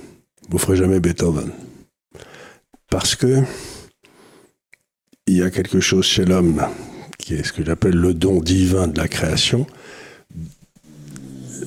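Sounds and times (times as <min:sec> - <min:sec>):
speech: 0:00.5 - 0:01.7, 0:02.9 - 0:03.8, 0:05.3 - 0:10.6
snoring: 0:10.4 - 0:11.6.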